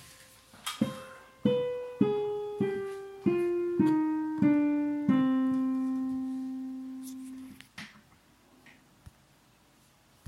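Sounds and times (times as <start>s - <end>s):
minor scales exercises: 0.8s - 7.6s.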